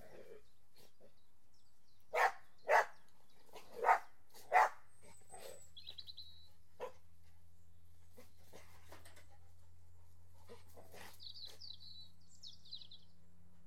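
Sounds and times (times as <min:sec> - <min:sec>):
dog barking: 0:02.1 - 0:03.0, 0:03.7 - 0:04.8, 0:06.8 - 0:07.0.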